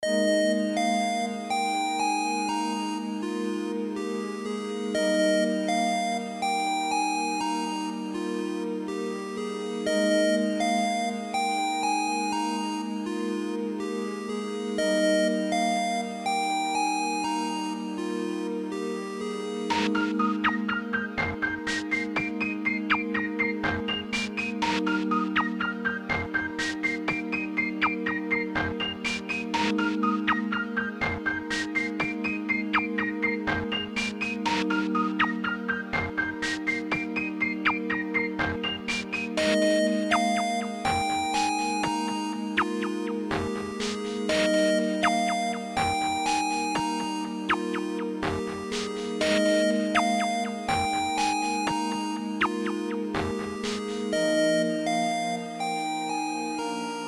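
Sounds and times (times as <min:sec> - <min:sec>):
unused lab music: 0:00.0 - 0:57.0.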